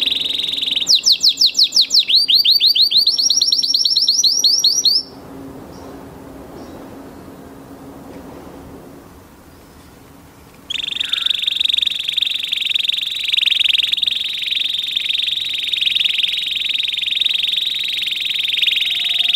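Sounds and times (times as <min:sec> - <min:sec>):
canary singing: 0:00.0 - 0:06.0, 0:10.5 - 0:19.3.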